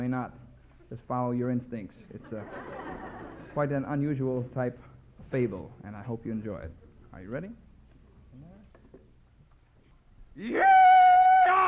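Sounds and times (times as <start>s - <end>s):
speech: 0.0s - 2.8s, 3.6s - 7.6s, 10.4s - 10.9s
laughter: 2.1s - 3.7s
rebel yell: 10.4s - 11.6s.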